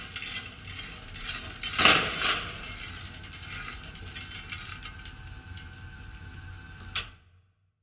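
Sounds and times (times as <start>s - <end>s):
industrial textile manufacturing machinery running: 0.0s - 5.7s.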